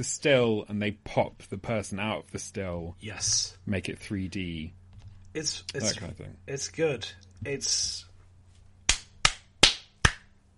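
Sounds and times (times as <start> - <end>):
speech: 0.0 - 8.1
faint low hum: 0.0 - 10.5
sharp hand claps: 8.9 - 10.4.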